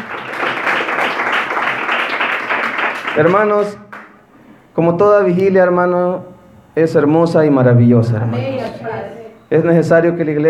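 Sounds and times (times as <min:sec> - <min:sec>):
audience applause: 0:00.0 - 0:04.1
speech: 0:03.2 - 0:03.8, 0:04.8 - 0:10.4.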